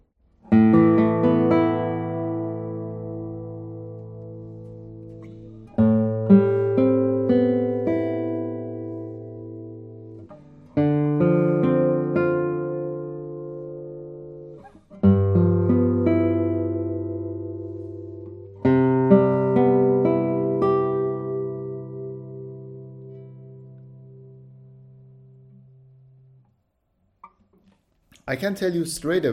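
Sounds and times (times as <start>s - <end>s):
acoustic guitar chords strummed: 0.5s - 26.4s
speech: 28.4s - 29.3s.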